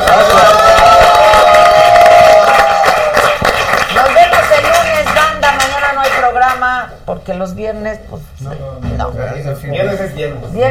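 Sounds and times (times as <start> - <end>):
audience applause: 0.0 - 6.6
speech: 7.3 - 10.6.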